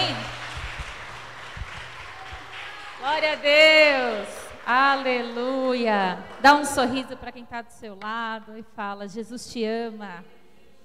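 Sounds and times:
audience applauding: 0.0s - 7.1s
speech: 3.0s - 10.4s.

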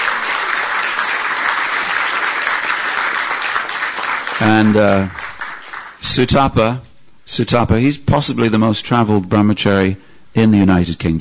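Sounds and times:
round of applause: 0.0s - 6.0s
speech: 4.4s - 5.2s, 6.0s - 11.1s.

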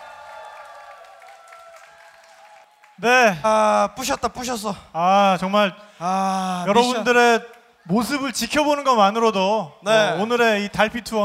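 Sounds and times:
audience applause: 0.0s - 3.0s
speech: 3.0s - 11.2s.

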